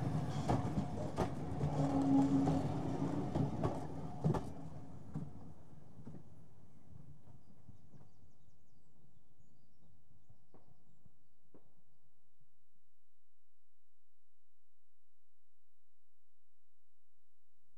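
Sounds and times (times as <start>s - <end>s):
train passing slowly: 0.0s - 6.3s.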